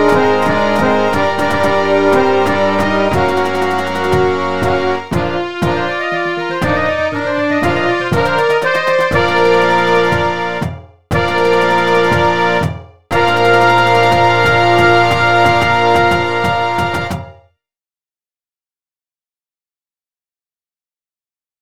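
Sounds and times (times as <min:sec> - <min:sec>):
full score hymn: 0:00.0 - 0:17.2.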